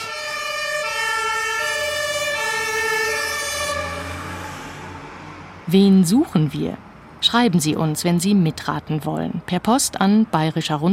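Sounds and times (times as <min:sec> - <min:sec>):
fire engine siren passing: 0:00.0 - 0:05.7
speech: 0:05.7 - 0:10.9.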